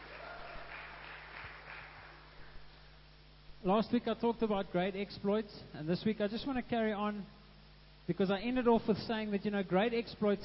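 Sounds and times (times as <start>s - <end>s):
faint audience applause welcoming family and friends: 0.0s - 2.7s
speech: 3.6s - 7.4s, 8.1s - 10.4s.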